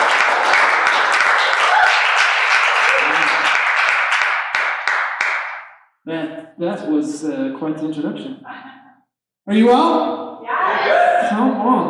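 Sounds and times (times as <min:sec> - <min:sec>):
audience cheering: 0:00.0 - 0:03.6, 0:10.4 - 0:11.5
audience clapping at Takeover Church in Grand Rapids: 0:00.0 - 0:05.8
speech: 0:06.1 - 0:08.8, 0:09.5 - 0:10.2, 0:11.3 - 0:11.8.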